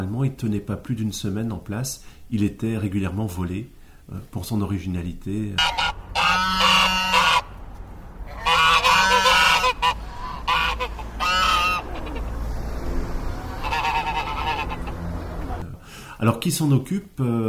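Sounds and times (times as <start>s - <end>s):
speech: 0.0s - 6.4s, 16.2s - 17.4s
geese honking: 5.6s - 15.6s.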